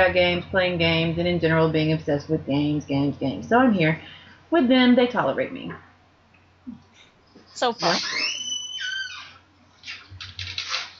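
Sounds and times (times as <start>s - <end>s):
speech: 0.0s - 5.9s, 7.6s - 8.4s
creaky door: 7.8s - 10.9s.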